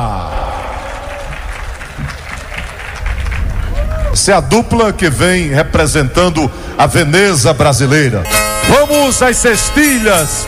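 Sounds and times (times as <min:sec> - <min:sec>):
audience applause: 0:00.0 - 0:04.6
speech: 0:04.2 - 0:10.4.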